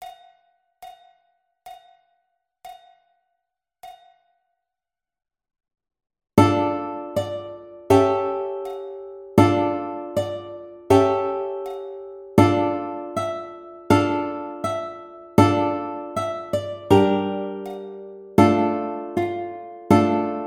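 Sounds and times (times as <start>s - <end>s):
ukulele playing: 6.4s - 20.4s.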